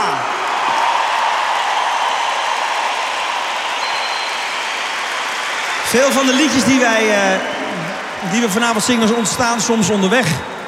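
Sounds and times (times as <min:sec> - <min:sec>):
audience applause for orchestra: 0:00.0 - 0:10.6
speech: 0:05.9 - 0:10.5.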